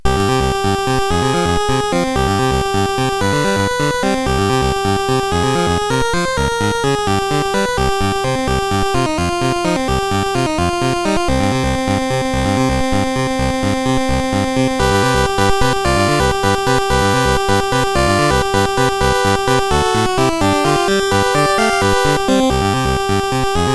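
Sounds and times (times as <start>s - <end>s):
SID CSG8580R5 chip synth music: 0.0s - 23.7s.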